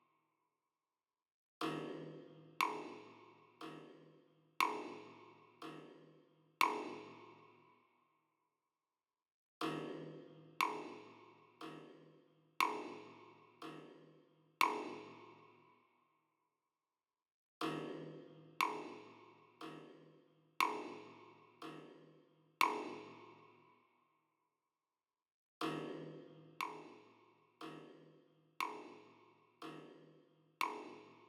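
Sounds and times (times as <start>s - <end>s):
drums and percussion: 1.6s - 7.4s, 9.6s - 15.4s, 17.6s - 23.4s, 25.6s - 31.2s.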